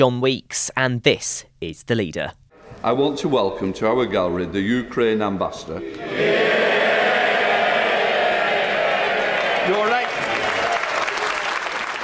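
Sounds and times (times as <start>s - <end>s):
speech: 0.0s - 6.6s
MPs' standing ovation for Ukrainian ambassador in the House of Commons: 6.0s - 12.0s.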